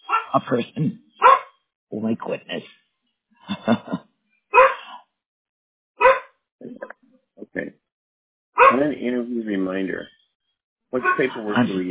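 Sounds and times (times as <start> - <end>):
speech: 0.3 - 1.1, 1.9 - 2.8, 3.5 - 4.0, 11.0 - 11.8
dog barking: 1.2 - 1.5, 4.6 - 5.0, 6.0 - 6.3, 8.6 - 9.0, 11.0 - 11.6
dog yipping: 1.2 - 1.6, 4.6 - 4.9, 6.0 - 6.3, 11.0 - 11.4
laughter: 3.4 - 4.0, 11.0 - 11.8.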